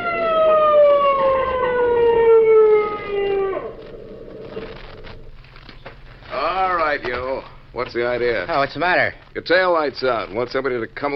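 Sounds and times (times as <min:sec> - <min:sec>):
police motorcycle siren wailing: 0:00.0 - 0:05.2
speech: 0:07.8 - 0:11.1.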